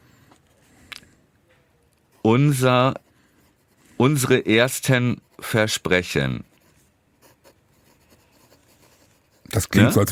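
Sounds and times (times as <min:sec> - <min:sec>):
someone writing notes: 0:02.1 - 0:10.1
speech: 0:02.2 - 0:03.0, 0:04.0 - 0:06.5, 0:09.6 - 0:10.1.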